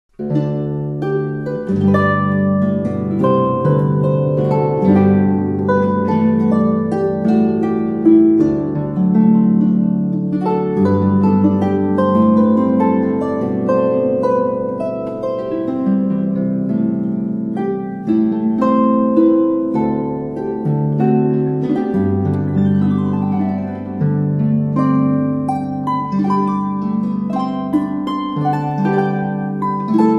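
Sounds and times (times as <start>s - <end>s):
Christmas carols on the harp: 0.1s - 30.1s.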